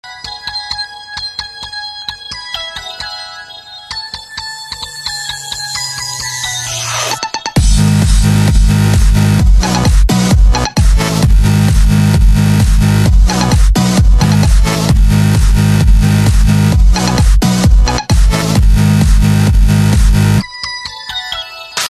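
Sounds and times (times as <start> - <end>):
bass: 4.8 - 20.4.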